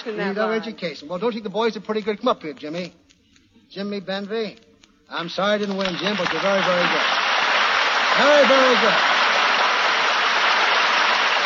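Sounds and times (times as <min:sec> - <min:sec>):
speech: 0:00.0 - 0:03.0, 0:03.7 - 0:07.2, 0:08.2 - 0:09.2
applause: 0:05.5 - 0:11.4.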